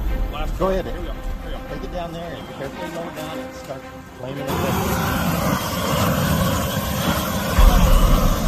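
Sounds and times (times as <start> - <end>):
man talking: 0.0 - 5.1
propane grill torch flame roaring hiss: 4.4 - 8.4.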